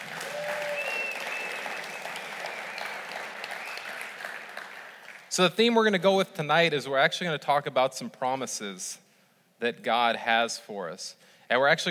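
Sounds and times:
audience clapping: 0.0s - 5.3s
speech: 5.4s - 9.0s, 9.6s - 11.8s.

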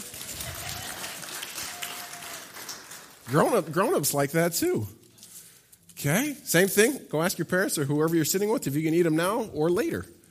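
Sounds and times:
audience clapping: 0.0s - 4.1s
speech: 3.3s - 5.0s, 6.0s - 10.2s.

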